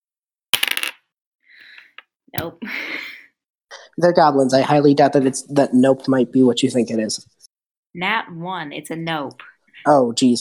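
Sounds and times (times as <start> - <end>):
dice clattering across a table for a tabletop role-playing attack roll: 0.6 - 1.1
speech: 2.3 - 3.2, 4.0 - 10.3.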